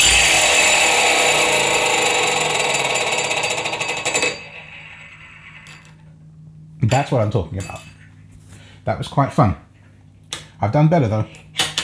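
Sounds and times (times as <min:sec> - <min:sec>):
metal ring spinning around a door handle: 0:00.0 - 0:05.9
speech: 0:06.9 - 0:07.9, 0:08.8 - 0:09.6, 0:10.6 - 0:11.4.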